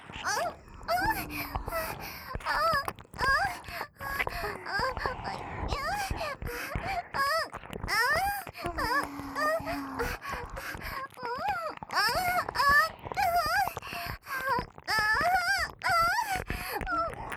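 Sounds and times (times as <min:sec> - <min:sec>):
licking of both ears: 0:00.0 - 0:17.3
acted moaning: 0:00.2 - 0:06.1, 0:08.6 - 0:10.3.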